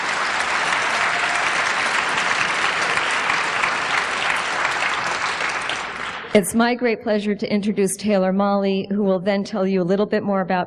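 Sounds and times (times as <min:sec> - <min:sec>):
audience applause: 0:00.0 - 0:06.4
speech: 0:06.3 - 0:10.6.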